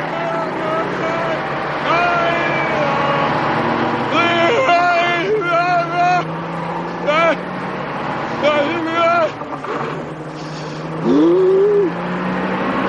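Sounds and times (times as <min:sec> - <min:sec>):
snowcat tracked engine rumbling outside a fog-bound hotel in a 1980 horror film: 0:00.0 - 0:12.8
person speaking: 0:11.0 - 0:12.0.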